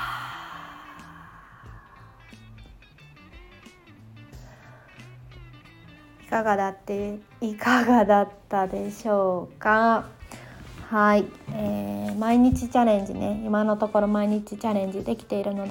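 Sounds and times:
long breathy exhale during a deep breathing exercise: 0:00.0 - 0:02.5, 0:04.3 - 0:05.4
speech: 0:06.3 - 0:10.2, 0:10.9 - 0:15.7.

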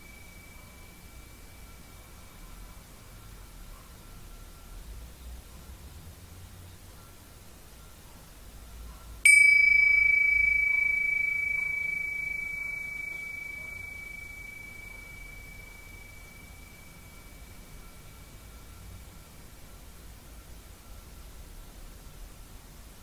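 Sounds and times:
Tibetan singing bowl struck and ringing: 0:00.0 - 0:02.2, 0:09.3 - 0:18.8.

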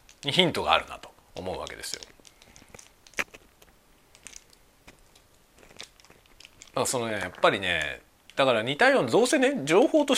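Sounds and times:
speech: 0:00.2 - 0:02.1, 0:06.8 - 0:10.1
chewing and crunching food while eating: 0:01.7 - 0:07.9.

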